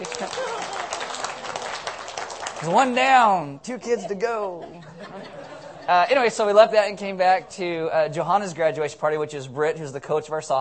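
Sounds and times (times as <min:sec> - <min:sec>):
laughter: 0:00.0 - 0:01.6, 0:03.8 - 0:06.7
small group clapping: 0:00.0 - 0:03.2
speech: 0:02.6 - 0:10.5.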